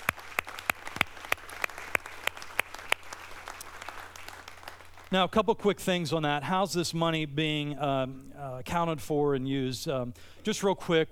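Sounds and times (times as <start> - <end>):
audience applause: 0.0 - 5.2
speech: 5.1 - 11.1.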